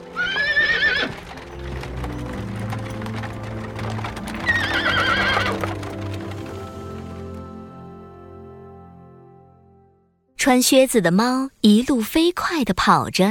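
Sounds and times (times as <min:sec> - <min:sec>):
horse-drawn carriage: 0:00.0 - 0:08.0
hooves of horse-drawn carriage: 0:00.0 - 0:08.2
horse neighing: 0:00.1 - 0:01.3, 0:04.4 - 0:05.8
speech: 0:10.5 - 0:13.2.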